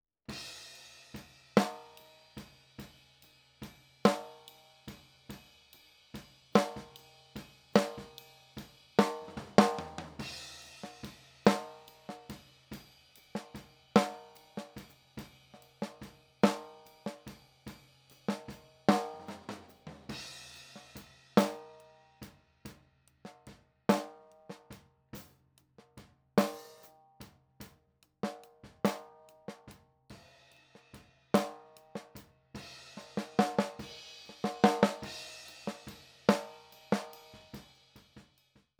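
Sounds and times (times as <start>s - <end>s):
snare drum: 0.3s - 2.2s, 4.1s - 5.0s, 6.6s - 7.1s, 7.8s - 17.4s, 18.2s - 21.9s, 23.9s - 24.8s, 26.4s - 27.0s, 28.2s - 38.3s.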